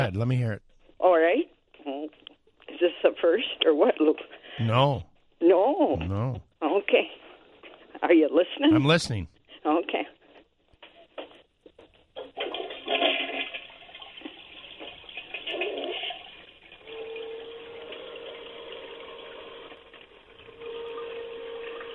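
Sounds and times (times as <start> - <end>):
speech: 0.0 - 1.5, 2.8 - 7.2, 8.0 - 10.2
toilet flushing: 12.3 - 21.9.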